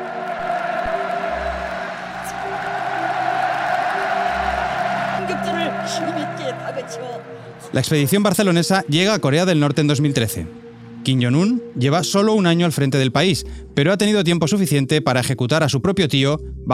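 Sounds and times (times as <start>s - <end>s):
stadium crowd in Pyongyang roaring: 0.0s - 8.6s
stadium crowd applauding the players' bow: 0.0s - 10.3s
speech: 5.3s - 16.7s.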